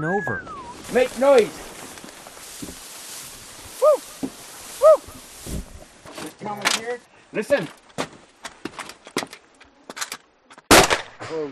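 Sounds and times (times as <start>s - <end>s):
speech: 0.0s - 1.7s, 6.5s - 7.8s, 11.3s - 11.5s
rifle fired into the air to scare off a bear: 10.7s - 11.2s.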